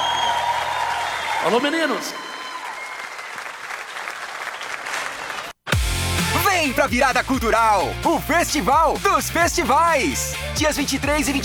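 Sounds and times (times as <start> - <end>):
audience applause: 0.0 - 5.6
speech: 1.4 - 2.3, 6.6 - 11.4.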